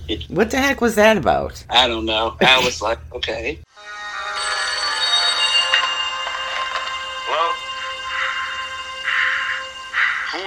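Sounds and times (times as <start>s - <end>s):
speech: 0.1s - 4.0s
telephone ringing: 3.8s - 10.4s.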